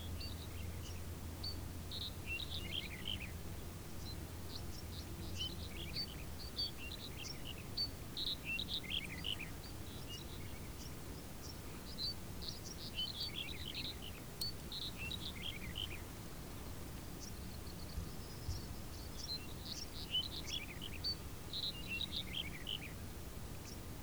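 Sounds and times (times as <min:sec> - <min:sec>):
several birds twittering and chirping in a field: 0:00.1 - 0:23.9.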